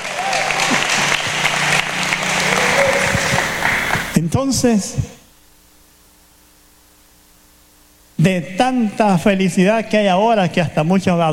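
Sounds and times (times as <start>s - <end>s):
audience applause: 0.0s - 4.2s
speech: 4.2s - 5.2s, 8.2s - 11.3s.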